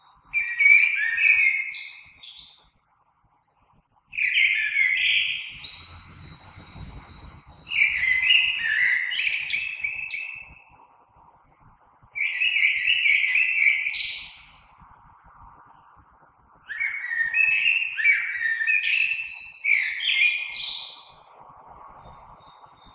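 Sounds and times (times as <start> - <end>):
blackbird: 0.0 - 2.6, 4.2 - 10.8, 12.2 - 15.0, 16.7 - 21.3.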